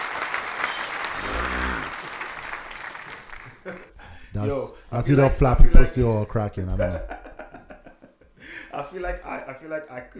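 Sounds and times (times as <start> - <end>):
group applauding: 0.0 - 4.0
speech: 3.6 - 7.2, 8.7 - 10.1.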